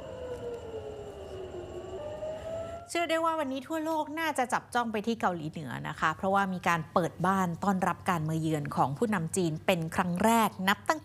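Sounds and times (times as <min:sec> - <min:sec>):
air raid warning siren in central Israel: 0:00.0 - 0:03.8
speech: 0:02.9 - 0:11.0.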